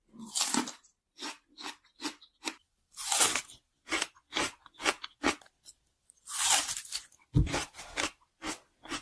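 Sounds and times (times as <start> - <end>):
person eating fried onions: 0.0 - 9.0.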